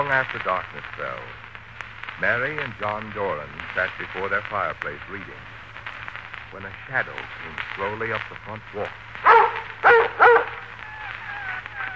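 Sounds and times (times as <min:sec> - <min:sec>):
speech: 0:00.0 - 0:01.4, 0:02.2 - 0:05.6, 0:06.5 - 0:09.3
dog barking at the door: 0:09.2 - 0:10.6.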